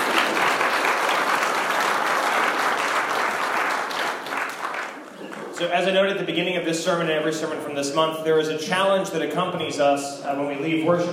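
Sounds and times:
audience applause: 0:00.0 - 0:05.7
speech: 0:05.6 - 0:11.1.

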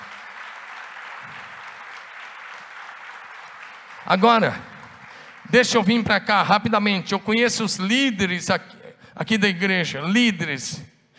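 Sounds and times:
audience applause: 0:00.0 - 0:06.7
speech: 0:04.0 - 0:04.7, 0:05.5 - 0:10.9.

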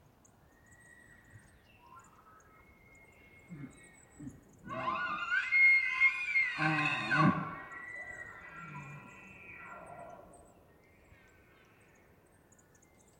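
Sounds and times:
bull elk bugling in rutting season on a dry high plateau: 0:04.7 - 0:10.0.

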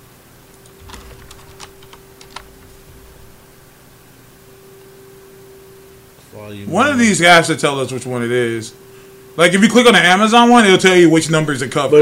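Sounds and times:
steady low hum and hiss: 0:00.0 - 0:12.0
computer keyboard typing: 0:00.7 - 0:03.4
speech: 0:06.3 - 0:08.8, 0:09.4 - 0:12.0.

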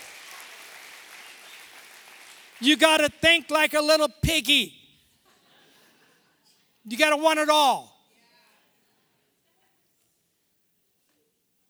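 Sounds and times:
audience clapping: 0:00.0 - 0:04.7, 0:06.9 - 0:07.8
audience shouting: 0:02.6 - 0:04.8, 0:06.9 - 0:07.9
speech: 0:02.6 - 0:04.8, 0:06.8 - 0:07.9.

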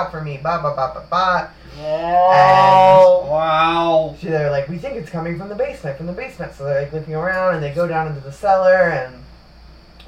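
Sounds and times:
speech: 0:00.0 - 0:09.2
cat yowling in pain: 0:01.8 - 0:04.0.

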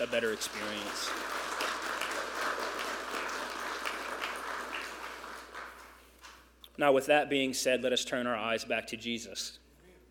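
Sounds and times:
speech: 0:00.0 - 0:01.8, 0:06.8 - 0:09.6
audience applause: 0:00.0 - 0:06.0.

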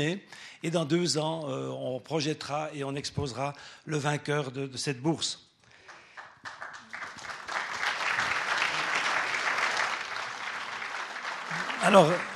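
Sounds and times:
speech: 0:00.0 - 0:05.5, 0:11.8 - 0:12.3
audience applause: 0:05.8 - 0:12.3.

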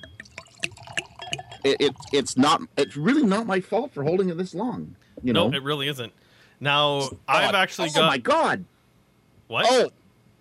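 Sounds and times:
old wine poured from a bottle into a glass: 0:00.0 - 0:02.3
speech: 0:01.6 - 0:08.7, 0:09.5 - 0:10.0.

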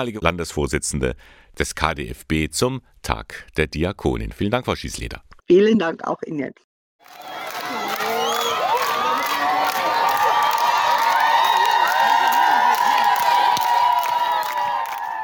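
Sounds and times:
speech: 0:00.0 - 0:07.4
large crowd cheering welcoming a new bishop: 0:07.0 - 0:15.2.

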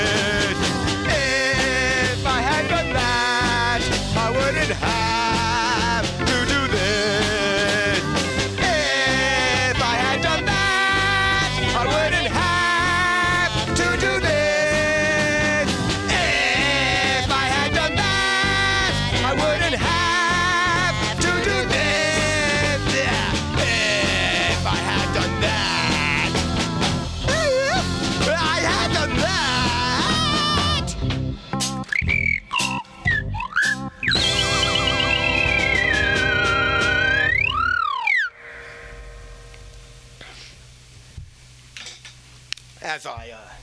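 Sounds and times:
busy dense music: 0:00.0 - 0:40.5
slide whistle swooping: 0:31.8 - 0:38.4.

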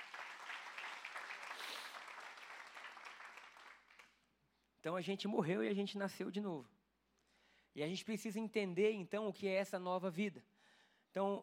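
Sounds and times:
audience applause: 0:00.0 - 0:04.1
speech: 0:04.8 - 0:06.8, 0:07.8 - 0:10.5, 0:11.1 - 0:11.4.

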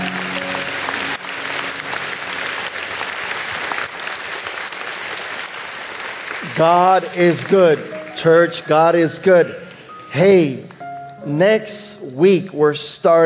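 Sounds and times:
audience applause: 0:00.0 - 0:10.1
speech: 0:06.6 - 0:13.2.

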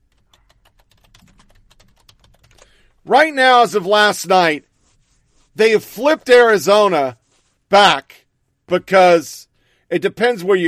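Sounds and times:
computer keyboard typing: 0:00.0 - 0:02.9
speech: 0:03.0 - 0:04.7, 0:05.6 - 0:10.6.

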